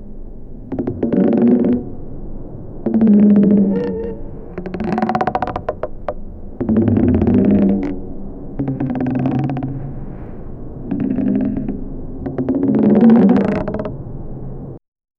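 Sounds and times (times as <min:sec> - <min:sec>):
oars: 0:02.8 - 0:14.0.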